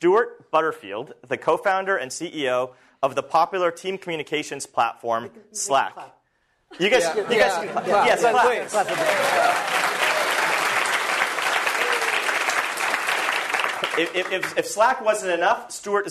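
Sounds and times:
speech: 0.0 - 10.0, 14.0 - 16.1
laughter: 6.7 - 12.3
audience applause: 8.0 - 14.7.

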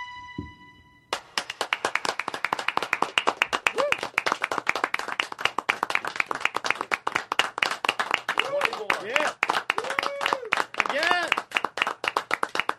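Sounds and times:
audience applause: 1.1 - 12.7
crowd whoops and cheers: 3.7 - 4.1, 9.7 - 10.6.

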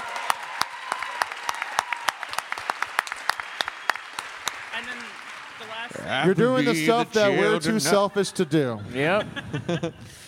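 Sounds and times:
audience clapping: 0.0 - 7.0
speech: 5.6 - 10.2
laughter: 6.2 - 10.2.

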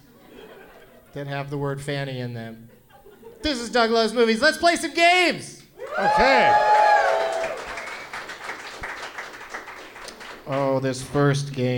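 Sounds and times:
laughter: 0.0 - 1.2, 2.7 - 3.6
speech: 1.2 - 2.8, 3.4 - 6.7, 10.5 - 11.7
sparse clapping from a live comedy game show audience: 7.0 - 10.8.

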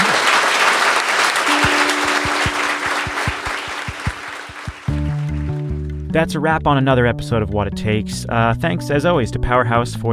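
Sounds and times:
audience applause: 0.0 - 5.6
rhythmic bass pulses: 1.5 - 6.3
low musical tone: 1.5 - 6.8
speech: 6.1 - 10.1.

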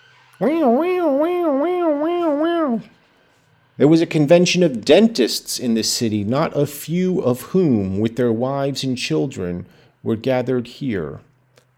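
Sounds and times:
voice imitating a European siren: 0.2 - 3.0
speech: 0.4 - 2.1, 2.7 - 3.0, 3.8 - 11.3.

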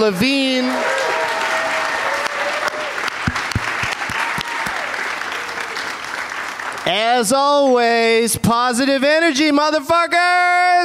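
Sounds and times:
speech: 0.0 - 1.0, 6.9 - 10.8
live audience applauding: 0.0 - 7.7.

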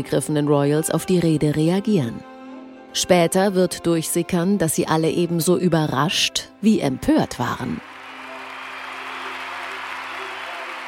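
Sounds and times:
speech: 0.0 - 2.3, 2.9 - 7.9
crowd applause in the streets of London: 7.8 - 10.8.

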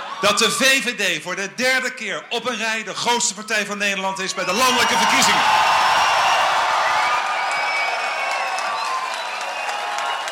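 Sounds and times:
CDA party supporters cheering on Dutch election night: 0.0 - 0.6, 4.3 - 10.2
speech: 0.2 - 5.8
shrill whistles: 5.9 - 10.2
supporters clapping: 7.0 - 10.2.

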